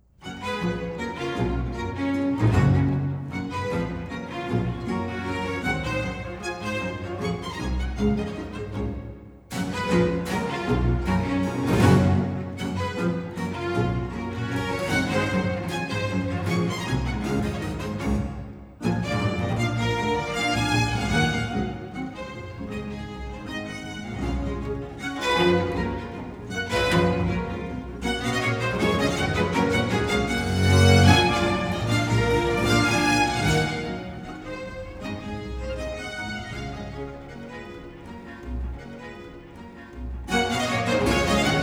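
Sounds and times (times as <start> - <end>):
orchestral sinfonia allegro movement: 0.2 - 41.6.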